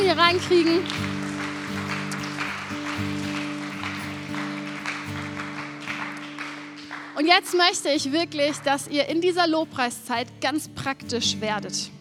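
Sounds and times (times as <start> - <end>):
audience applause: 0.0 - 7.9
speech: 0.1 - 1.1, 7.2 - 11.9.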